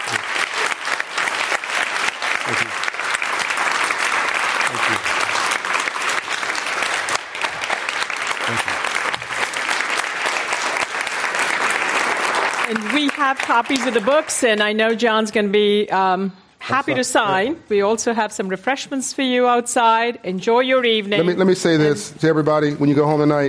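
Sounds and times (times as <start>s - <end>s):
audience round of applause: 0.0s - 14.8s
speech: 13.3s - 23.4s.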